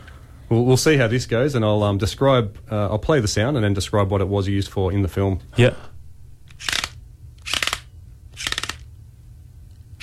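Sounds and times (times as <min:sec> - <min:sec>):
speech: 0:00.5 - 0:05.9
toy car wheels with broken cogs grinding: 0:06.6 - 0:08.8.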